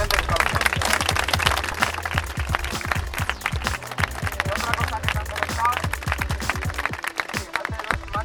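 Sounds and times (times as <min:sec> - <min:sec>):
audience applause: 0:00.0 - 0:08.1.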